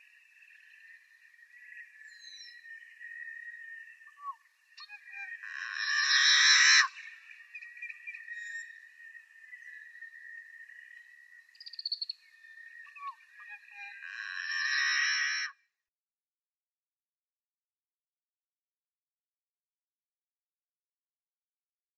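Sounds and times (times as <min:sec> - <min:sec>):
Yellow-headed Blackbird song: 0:00.0 - 0:15.1.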